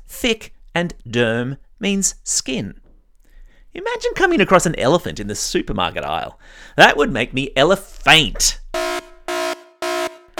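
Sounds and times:
speech: 0.2 - 2.8, 3.7 - 8.6
dad joke alarm horn blasts: 8.7 - 10.3.

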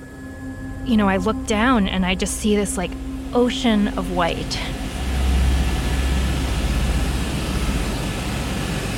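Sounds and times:
speech: 0.8 - 4.8
helicopter flying over ice sheet: 2.4 - 8.9.

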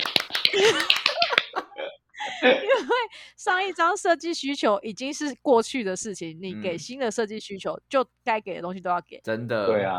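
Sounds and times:
hands clapping: 0.0 - 1.6
speech: 2.4 - 9.9.

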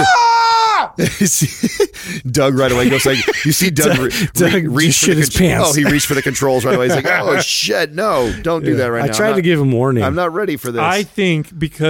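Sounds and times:
person screaming loudly in studio: 0.0 - 1.0
laughter: 1.0 - 9.3
speech: 1.2 - 11.8.

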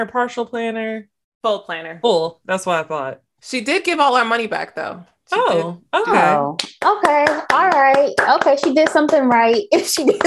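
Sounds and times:
speech: 0.0 - 10.2
hand clapping: 6.6 - 10.2.

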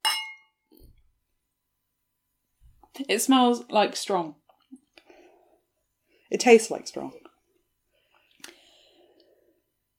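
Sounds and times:
wine glasses clinking in a toast: 0.0 - 0.6
speech: 3.0 - 4.4, 6.3 - 7.2.

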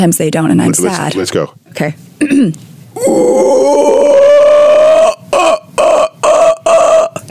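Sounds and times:
speech: 0.0 - 3.6
man imitating a howler monkey call: 3.0 - 7.2.

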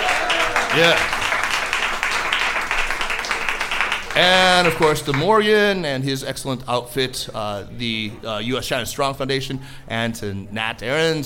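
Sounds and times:
audience applause: 0.0 - 5.3
speech: 0.8 - 1.2, 4.2 - 11.2.

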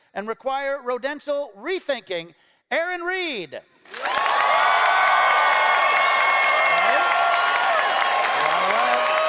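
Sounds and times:
speech: 0.1 - 4.6
audience applause voting for a debater: 3.9 - 9.2.

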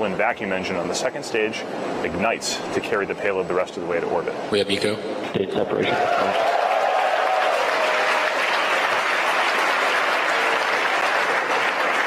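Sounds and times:
speech: 0.0 - 6.6
mission control team clapping and cheering: 5.9 - 12.0.

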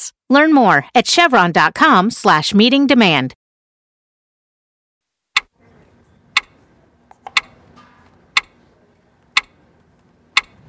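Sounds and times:
speech: 0.3 - 3.4
clock ticking: 7.3 - 7.6, 8.4 - 8.6, 9.4 - 9.6, 10.4 - 10.6.

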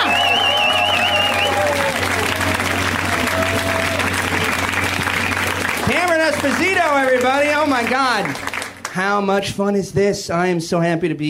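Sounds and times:
high whoops from a comedy show audience: 0.0 - 4.5
comedy show audience applause and cheering welcoming a comedian: 0.0 - 9.0
speech: 6.6 - 11.2.

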